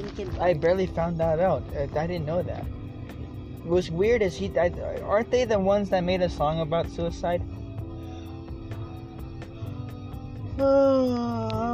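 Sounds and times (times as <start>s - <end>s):
speech: 0.2s - 2.8s, 3.6s - 7.6s, 10.6s - 11.7s
person yawning: 10.5s - 11.7s.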